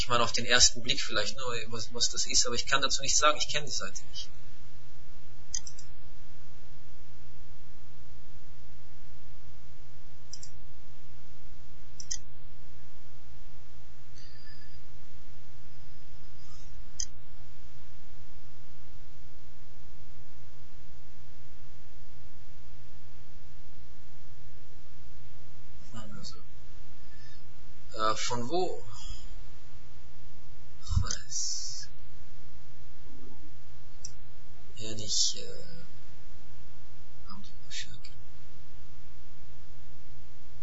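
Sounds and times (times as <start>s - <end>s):
constant soft hiss: 0.0s - 40.6s
steady low hum: 0.0s - 40.6s
speech: 0.1s - 4.4s, 28.4s - 28.8s
computer mouse clicking: 5.5s - 5.9s, 10.3s - 10.6s, 12.0s - 12.3s.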